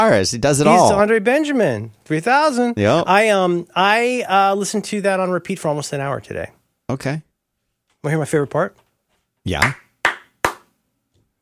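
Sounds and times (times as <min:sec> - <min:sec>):
speech: 0:00.0 - 0:07.3, 0:08.0 - 0:08.8, 0:09.4 - 0:09.8
hand claps in a song: 0:09.5 - 0:10.8.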